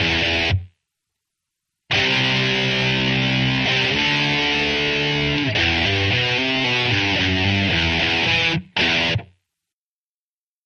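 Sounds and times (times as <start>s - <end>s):
rock guitar: 0.0s - 0.7s, 1.9s - 9.4s.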